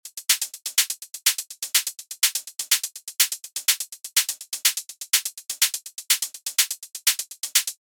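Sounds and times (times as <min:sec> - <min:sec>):
shakers: 0:00.0 - 0:07.8
gentle hi-hats: 0:00.0 - 0:07.9.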